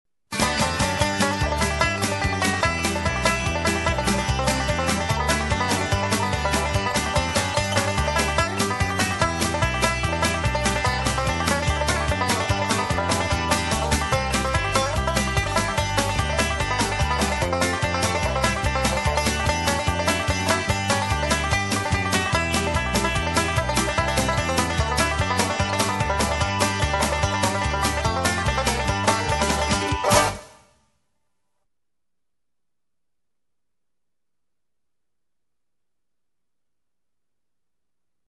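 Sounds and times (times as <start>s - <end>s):
bluegrass music: 0.3s - 30.5s.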